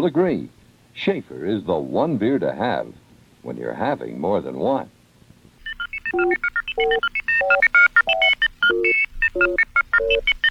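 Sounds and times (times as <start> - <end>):
speech: 0.0 - 5.0, 6.1 - 10.4
telephone ringing with electronic touch-tone beeps: 5.6 - 10.5.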